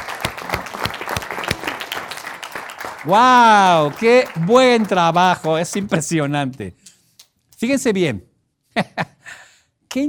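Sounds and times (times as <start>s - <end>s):
audience applause: 0.0s - 5.9s
speech: 3.0s - 6.8s, 7.6s - 9.1s.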